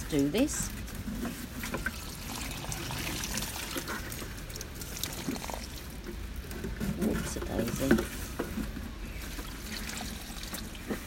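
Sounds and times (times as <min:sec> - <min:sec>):
speech: 0:00.1 - 0:01.9, 0:07.8 - 0:08.1
water pouring into a potted sumac tree: 0:01.6 - 0:08.2, 0:09.0 - 0:11.0.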